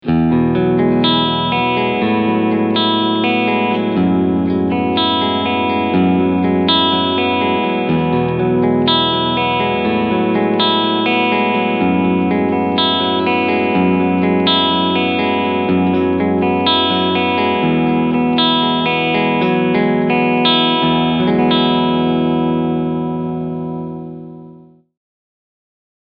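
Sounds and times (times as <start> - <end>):
clean electric guitar on both pickups: 0.0 - 24.9.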